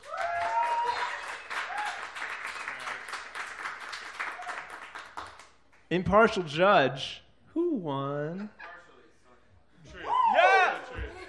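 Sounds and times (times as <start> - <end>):
audience applause: 0.0 - 5.5
speech: 5.9 - 7.2, 7.8 - 8.6.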